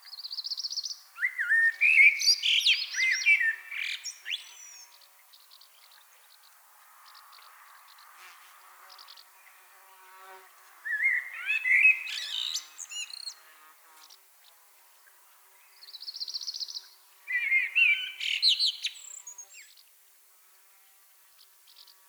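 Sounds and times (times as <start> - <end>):
common blackbird song: 0.0 - 8.2, 10.9 - 13.5, 14.4 - 19.9.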